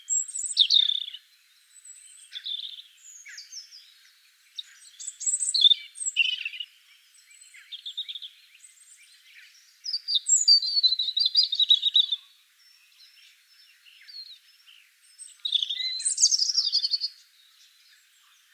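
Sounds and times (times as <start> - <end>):
European robin Erithacus rubecula singing: 0.0 - 18.5.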